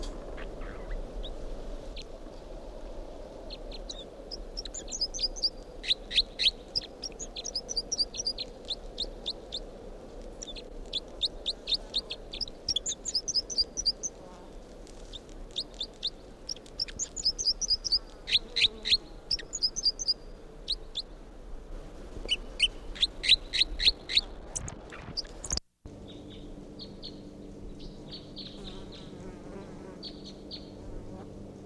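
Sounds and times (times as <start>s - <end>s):
bird song: 0.0s - 1.4s, 3.5s - 9.7s, 10.4s - 14.2s, 15.6s - 21.2s, 22.3s - 29.2s, 30.0s - 30.8s
low steady hum: 0.0s - 31.6s.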